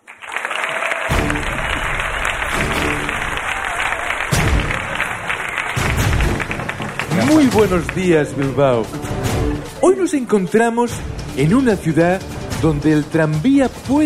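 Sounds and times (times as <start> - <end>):
audience applause: 0.0 - 10.0
speech: 7.4 - 14.0.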